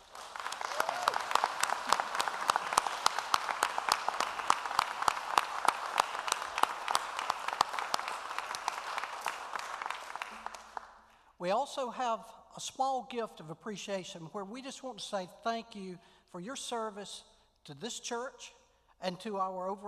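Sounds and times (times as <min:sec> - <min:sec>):
audience round of applause: 0:00.0 - 0:11.0
speech: 0:11.4 - 0:19.8.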